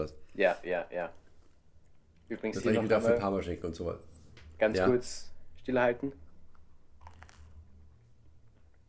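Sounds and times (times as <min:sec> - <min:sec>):
speech: 0:00.0 - 0:01.2, 0:02.3 - 0:06.2
biting into toast that is no longer crispy: 0:07.0 - 0:07.6.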